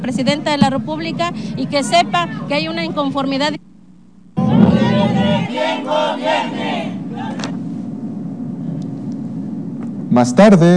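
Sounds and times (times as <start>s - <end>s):
speech: 0.0s - 3.7s, 5.0s - 7.0s, 10.2s - 10.7s
crowd shouting at a peaceful protest march: 4.4s - 7.5s.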